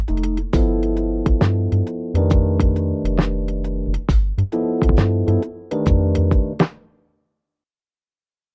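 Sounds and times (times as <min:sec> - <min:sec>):
blues music: 0:00.0 - 0:06.8.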